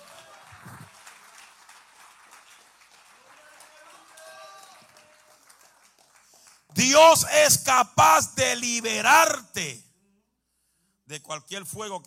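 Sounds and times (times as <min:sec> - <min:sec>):
crowd clapping: 0:00.0 - 0:07.2
speech: 0:06.8 - 0:09.8, 0:11.1 - 0:12.0.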